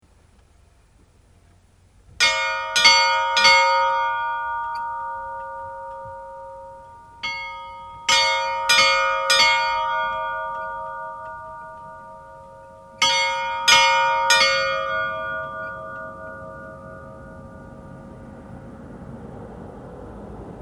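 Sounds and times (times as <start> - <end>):
Reyniskirkja church bells ringing: 2.2 - 20.6.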